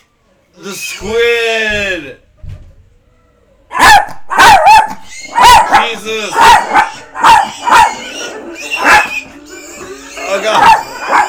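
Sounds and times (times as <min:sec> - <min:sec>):
speech: 0:00.6 - 0:02.2
dog barking: 0:03.7 - 0:11.2.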